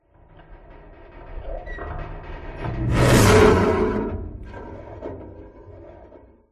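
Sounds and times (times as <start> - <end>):
cinematic metal whoosh: 2.6 - 4.6.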